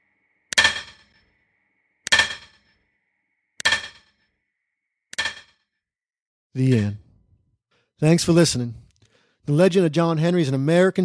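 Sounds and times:
hammer pounding on stone: 0.5 - 1.2, 2.1 - 2.7, 3.6 - 4.2, 5.2 - 5.6
speech: 6.6 - 7.0, 8.0 - 8.8, 9.4 - 11.0.

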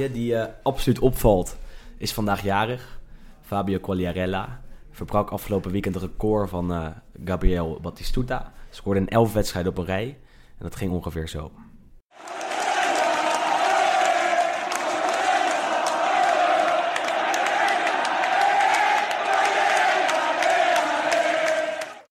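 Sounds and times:
speech: 0.0 - 12.4
large stadium crowd of football supporters singing in unison: 12.2 - 22.0.

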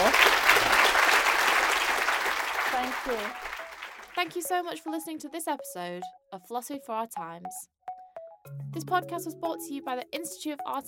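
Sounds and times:
audience applause: 0.0 - 4.3
speech: 4.2 - 7.8, 8.4 - 10.8.

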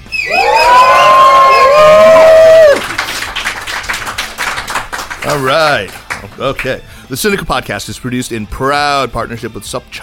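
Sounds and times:
crowd roaring imitating lions: 0.2 - 3.0
scattered cheering and clapping: 0.2 - 6.8
speech: 5.4 - 10.0.

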